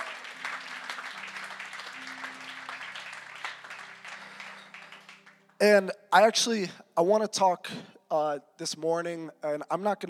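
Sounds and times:
church congregation applauding its pastors: 0:00.0 - 0:05.6
speech: 0:05.6 - 0:10.0.

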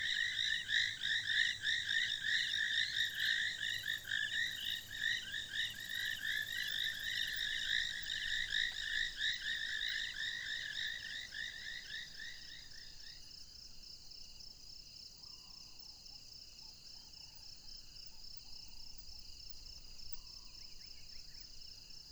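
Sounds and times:
frogs or insects trilling at night at Mmabolela Reserve: 0:00.0 - 0:13.2.

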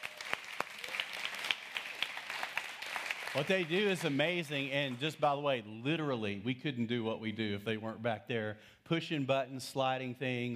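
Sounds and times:
crowd applauding: 0:00.0 - 0:05.1
speech: 0:03.4 - 0:10.5.

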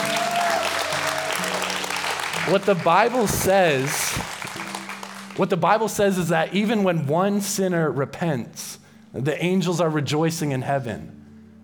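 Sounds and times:
audience applause: 0:00.0 - 0:05.8
speech: 0:02.5 - 0:04.0, 0:05.4 - 0:11.2.

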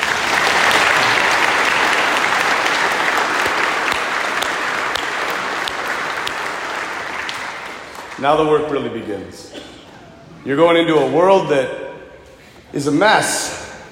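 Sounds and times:
audience clapping for graduates: 0:00.0 - 0:08.7
speech: 0:08.2 - 0:09.7, 0:10.4 - 0:11.8, 0:12.7 - 0:13.6.

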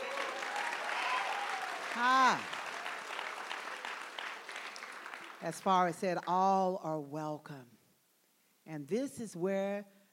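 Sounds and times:
person whooping: 0:00.0 - 0:02.5
crowd clapping: 0:00.0 - 0:05.8
speech: 0:02.0 - 0:02.6, 0:05.4 - 0:07.8, 0:08.7 - 0:10.0.

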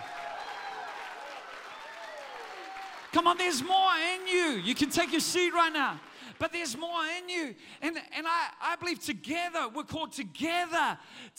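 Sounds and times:
audience clapping: 0:00.0 - 0:07.3
speech: 0:03.1 - 0:11.3.

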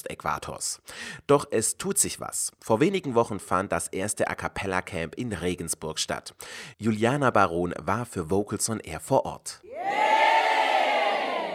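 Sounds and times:
speech: 0:00.0 - 0:10.1
large crowd roaring and cheering: 0:09.7 - 0:11.5.

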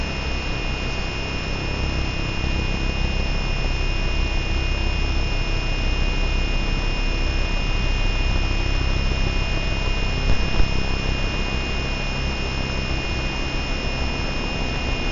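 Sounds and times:
electromagnetic interference hum and hiss via SOMA Ether: 0:00.0 - 0:15.1
heavy low rumble: 0:10.2 - 0:12.4.

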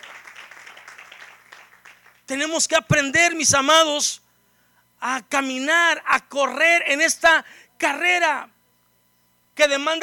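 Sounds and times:
audience applauding: 0:00.0 - 0:02.2
speech: 0:02.3 - 0:04.2, 0:05.0 - 0:08.5, 0:09.6 - 0:10.0.

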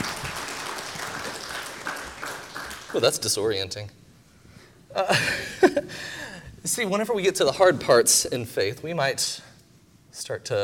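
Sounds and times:
audience applause: 0:00.0 - 0:03.3
speech: 0:02.9 - 0:04.0, 0:05.0 - 0:09.5, 0:10.2 - 0:10.6.

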